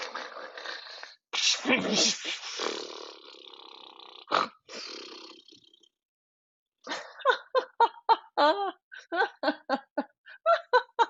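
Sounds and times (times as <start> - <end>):
voice imitating loud exaggerated snoring: 0.0 - 1.2, 2.0 - 6.0
person laughing: 6.9 - 11.0.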